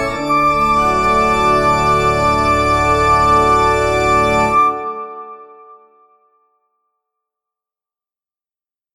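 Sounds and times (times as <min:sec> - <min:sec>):
church organ trumpet stop: 0:00.0 - 0:05.1.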